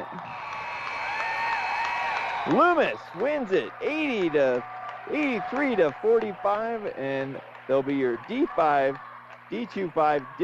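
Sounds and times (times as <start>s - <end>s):
basketball crowd applauding: 0.0s - 10.4s
speech: 2.5s - 10.4s.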